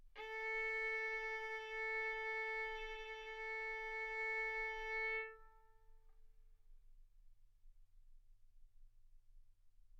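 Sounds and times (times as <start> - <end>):
violin arco on A string: 0.0 - 5.9.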